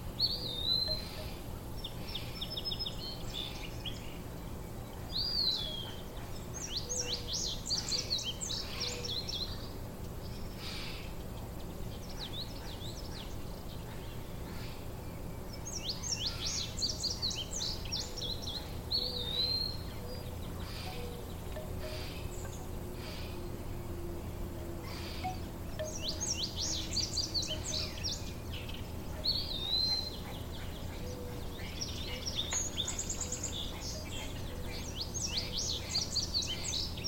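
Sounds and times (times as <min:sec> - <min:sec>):
birds chirping and trilling: 0:00.0 - 0:37.0
hummingbird wings humming: 0:00.0 - 0:37.0
soft drawn-out tone: 0:00.4 - 0:02.6, 0:19.7 - 0:29.8, 0:33.3 - 0:35.2.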